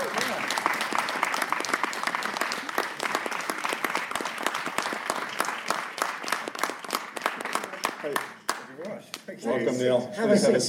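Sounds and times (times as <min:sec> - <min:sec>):
studio audience cheering: 0:00.0 - 0:06.1
studio audience applause for a guest: 0:00.0 - 0:09.4
speech: 0:09.4 - 0:10.6.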